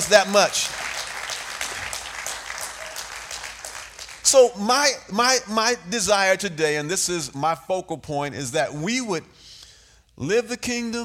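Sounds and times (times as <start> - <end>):
audience applause: 0.0 - 4.2
speech: 0.1 - 0.8, 4.3 - 9.4, 10.2 - 11.0.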